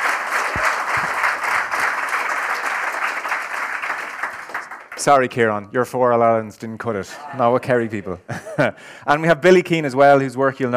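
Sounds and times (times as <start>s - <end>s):
audience applause: 0.0s - 5.1s
speech: 5.0s - 10.7s.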